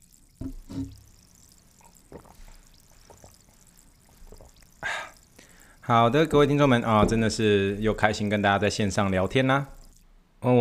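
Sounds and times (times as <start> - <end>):
sparkling water poured into a glass: 0.0 - 5.9
faint scattered fizzing crackles: 0.0 - 10.1
speech: 5.9 - 9.8.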